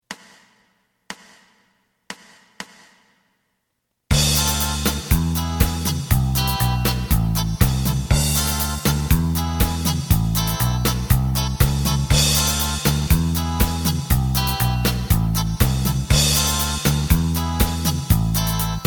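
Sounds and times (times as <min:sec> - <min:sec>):
lead melody: 0:04.1 - 0:18.8.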